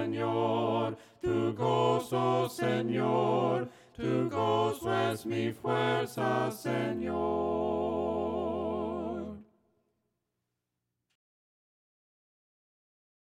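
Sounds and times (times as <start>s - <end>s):
voices singing hymns a cappella: 0.0s - 9.5s.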